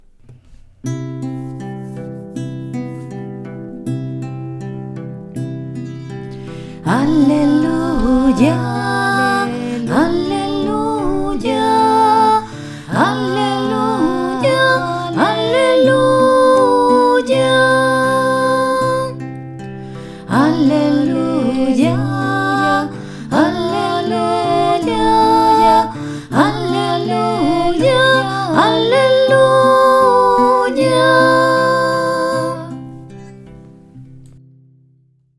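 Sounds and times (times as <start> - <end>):
solo voice singing: 6.8 - 19.2, 20.2 - 32.8.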